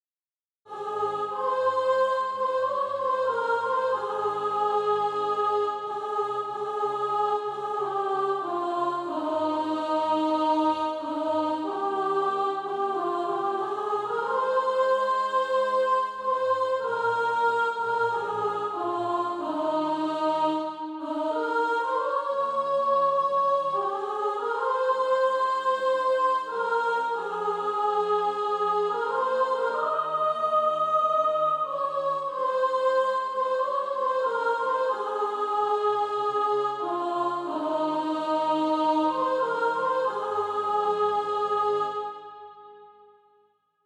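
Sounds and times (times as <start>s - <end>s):
soprano singing practice music: 0.7s - 42.1s.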